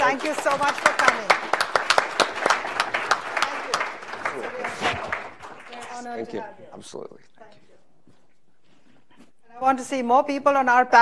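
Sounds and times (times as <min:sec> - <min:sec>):
audience applause: 0:00.0 - 0:06.1
speech: 0:00.1 - 0:01.5, 0:06.0 - 0:07.8, 0:09.6 - 0:11.0.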